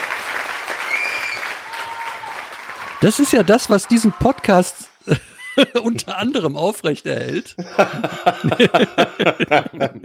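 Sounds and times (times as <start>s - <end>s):
applause: 0.0s - 5.0s
laughter: 3.0s - 6.4s, 7.3s - 10.0s
speech: 3.0s - 10.0s.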